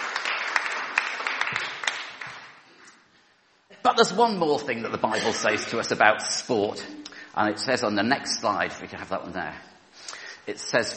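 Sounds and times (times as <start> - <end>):
audience applause: 0.0 - 2.5
speech: 3.8 - 9.7, 10.4 - 10.9.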